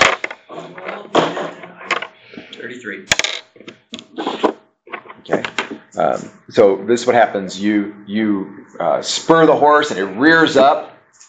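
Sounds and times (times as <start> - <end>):
speech: 2.6 - 3.8, 5.3 - 10.9
percentile dice clattering across a hard surface: 3.1 - 3.5.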